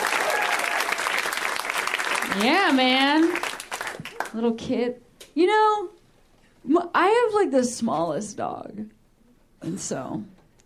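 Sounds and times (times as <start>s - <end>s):
audience applause: 0.0s - 4.4s
speech: 2.3s - 3.5s, 4.3s - 6.0s, 6.6s - 9.0s, 9.6s - 10.4s.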